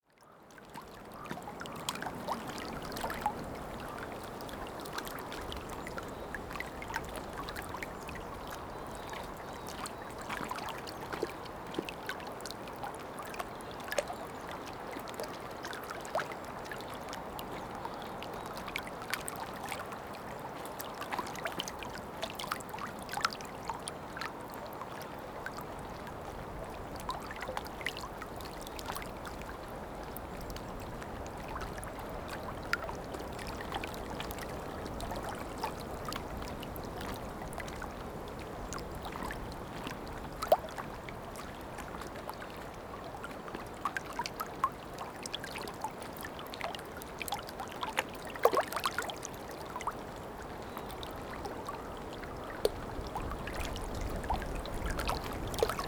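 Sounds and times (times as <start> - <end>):
flowing water: 0.1 - 55.8.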